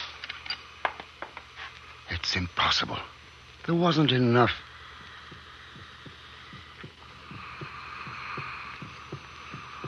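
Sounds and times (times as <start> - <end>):
constant hissing hum: 0.0 - 9.8
speech: 2.2 - 4.7
heartbeat heard through a stethoscope: 4.6 - 9.8.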